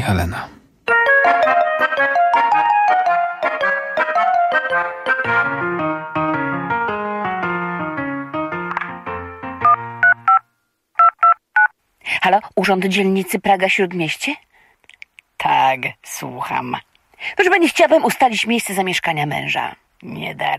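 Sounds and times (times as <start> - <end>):
speech: 0.1 - 0.6, 12.6 - 14.4, 15.7 - 20.5
bright jingly electronic melody: 0.9 - 8.7
short telephone dialing tones of a phone call: 9.6 - 10.4, 11.0 - 11.7.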